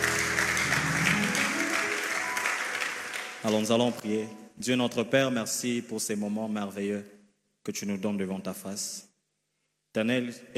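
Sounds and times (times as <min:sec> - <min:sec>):
church congregation clapping: 0:00.0 - 0:04.3
speech: 0:03.4 - 0:09.1, 0:10.0 - 0:10.5.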